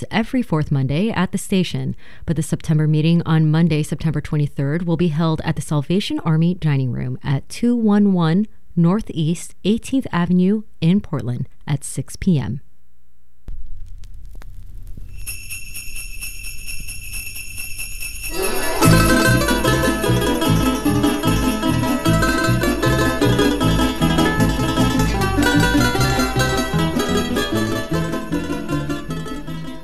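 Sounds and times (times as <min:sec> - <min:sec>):
speech: 0:00.1 - 0:12.7
sleigh bells: 0:15.1 - 0:29.8
balalaika music: 0:18.3 - 0:29.8.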